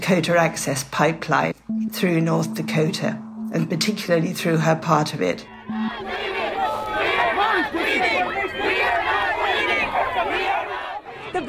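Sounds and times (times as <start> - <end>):
speech: 0.1 - 6.2
crowd of protesters yelling: 5.5 - 11.4.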